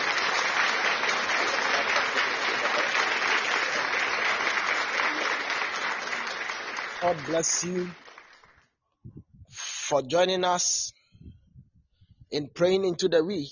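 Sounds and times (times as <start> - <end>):
audience clapping hands as offering: 0.0 - 8.7
speech: 7.0 - 8.0, 9.9 - 11.0, 12.3 - 13.5.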